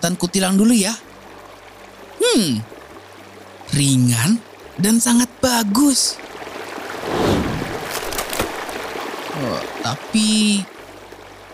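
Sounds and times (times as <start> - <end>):
speech: 0.0 - 1.1, 2.3 - 2.7, 3.7 - 6.3, 9.4 - 10.8
flowing river water rushing and splashing: 1.0 - 11.5.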